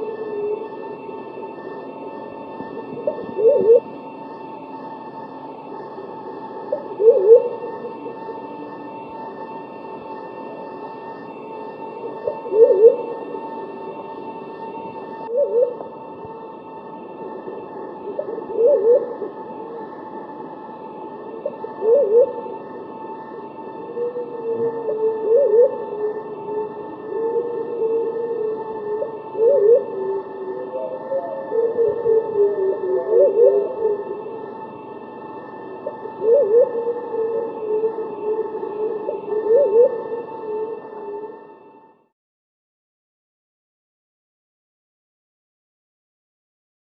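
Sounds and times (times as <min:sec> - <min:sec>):
white-faced cuckoo-dove calling: 0:00.0 - 0:04.4, 0:06.5 - 0:09.3, 0:11.8 - 0:13.8, 0:15.3 - 0:16.5, 0:17.2 - 0:41.4
steady tonal hum: 0:00.0 - 0:42.2.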